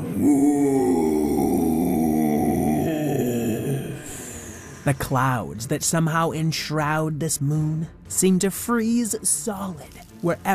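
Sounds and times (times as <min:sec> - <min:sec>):
giant creature's icy deep rumbling roar: 0:00.0 - 0:04.7
speech: 0:00.2 - 0:00.8, 0:04.8 - 0:10.5.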